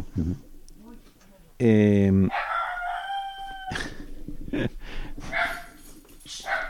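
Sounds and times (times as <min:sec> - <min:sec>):
small female dog barking at someone coming to the house: 0:02.3 - 0:03.4, 0:05.3 - 0:05.8, 0:06.4 - 0:06.6
rooster crowing: 0:02.3 - 0:04.0.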